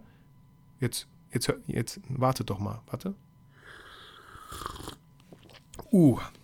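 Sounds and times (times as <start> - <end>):
speech: 0.8 - 3.3, 5.9 - 6.4
slurping sip of very hot Christmas-scented tea: 3.8 - 5.9.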